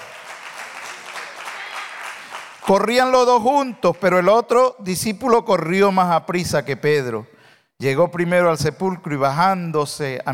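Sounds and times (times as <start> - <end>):
church congregation applauding during a worship service: 0.0 - 4.5
speech: 2.7 - 10.3.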